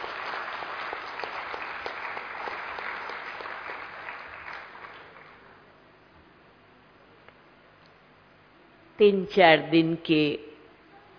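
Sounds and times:
audience applause: 0:00.0 - 0:05.6
speech: 0:09.0 - 0:10.5.

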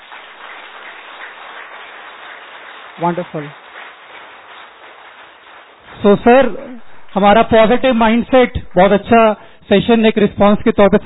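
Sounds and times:
audience applause after a seminar session: 0:00.0 - 0:07.8
speech: 0:03.0 - 0:03.6, 0:06.0 - 0:11.0.

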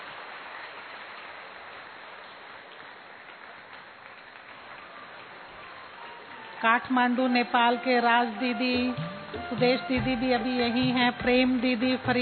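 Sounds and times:
audience applause welcoming an honoured guest: 0:00.0 - 0:07.7
speech: 0:06.6 - 0:12.2.

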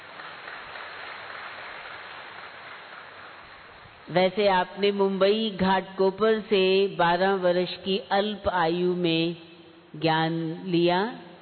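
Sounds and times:
audience clapping: 0:00.0 - 0:04.1
speech: 0:04.1 - 0:11.2.

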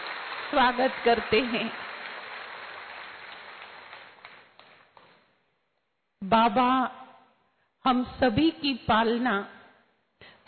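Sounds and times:
audience applause welcoming guests at a spiritual gathering: 0:00.0 - 0:04.8
speech: 0:00.5 - 0:01.8, 0:06.3 - 0:07.0, 0:07.8 - 0:09.6.

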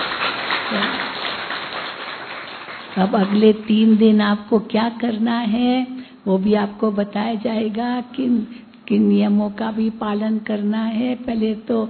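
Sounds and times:
audience applause at a spiritual gathering: 0:00.0 - 0:04.1
speech: 0:00.7 - 0:01.0, 0:03.0 - 0:11.8.

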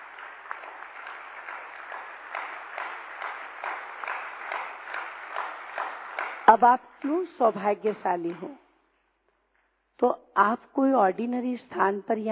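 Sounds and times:
audience applauding loudly: 0:00.0 - 0:08.6
speech: 0:06.5 - 0:08.6, 0:10.0 - 0:12.3.

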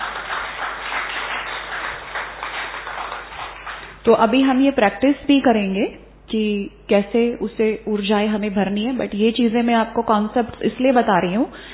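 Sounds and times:
audience clapping: 0:00.0 - 0:04.0
speech: 0:04.0 - 0:11.7.

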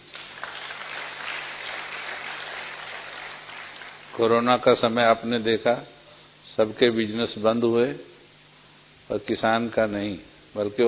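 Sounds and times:
audience applause: 0:00.0 - 0:04.5
speech: 0:04.2 - 0:06.0, 0:06.6 - 0:08.1, 0:09.1 - 0:10.8.

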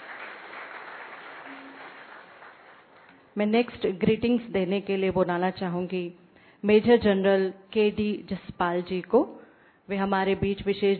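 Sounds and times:
applause: 0:00.0 - 0:03.4
speech: 0:03.4 - 0:10.9.

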